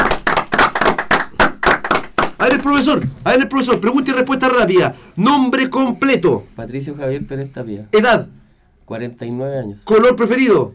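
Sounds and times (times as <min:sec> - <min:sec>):
hands clapping on a school radio programme: 0:00.0 - 0:04.0
speech: 0:02.5 - 0:10.7.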